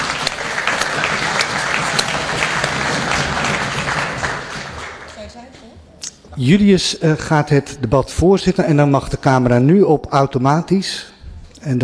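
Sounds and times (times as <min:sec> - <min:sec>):
audience applause: 0:00.0 - 0:05.2
speech: 0:06.4 - 0:11.8.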